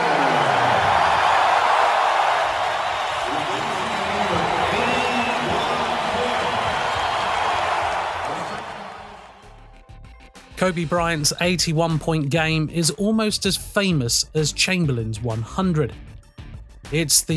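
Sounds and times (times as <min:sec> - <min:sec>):
arena crowd cheering ovation: 0:00.0 - 0:09.6
speech: 0:10.6 - 0:16.0, 0:16.9 - 0:17.3.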